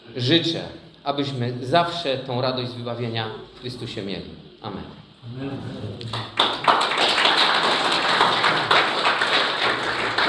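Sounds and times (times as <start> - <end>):
speech: 0.2 - 7.1
audience applause: 6.1 - 10.2.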